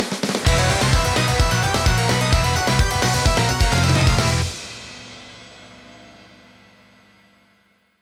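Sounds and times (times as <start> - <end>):
win jingle: 0.4 - 5.1.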